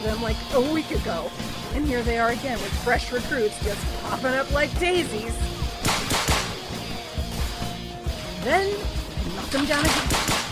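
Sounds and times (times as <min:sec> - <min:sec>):
speech: 0:00.0 - 0:05.6, 0:08.4 - 0:10.4
gunfire: 0:05.8 - 0:06.8, 0:09.6 - 0:10.5.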